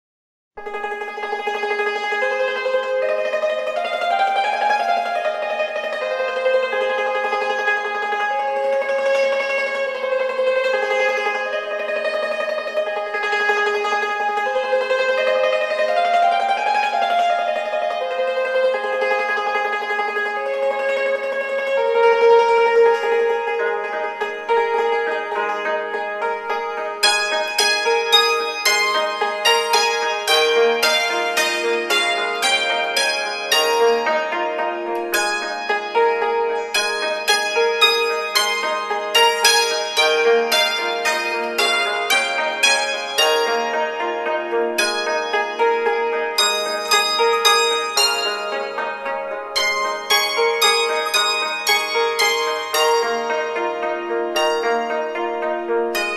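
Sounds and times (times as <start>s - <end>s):
hymns and medleys on Chinese hammered dulcimer: 0.6s - 56.1s.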